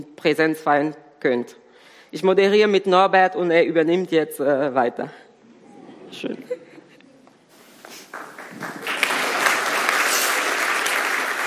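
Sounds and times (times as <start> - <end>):
speech: 0.0 - 5.2, 6.1 - 6.6
audience applause: 8.1 - 11.4.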